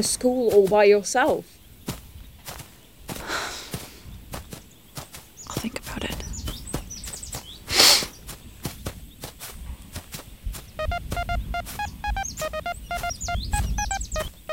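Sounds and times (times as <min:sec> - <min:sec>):
speech: 0:00.0 - 0:01.6
chirpy tweets: 0:00.0 - 0:14.5
footsteps crunching: 0:00.0 - 0:14.5
handheld electronic device beeping: 0:10.8 - 0:14.5.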